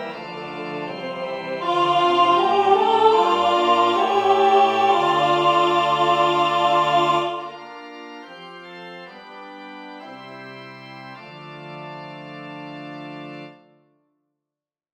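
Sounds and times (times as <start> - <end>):
alto voice singing: 0.6 - 7.8.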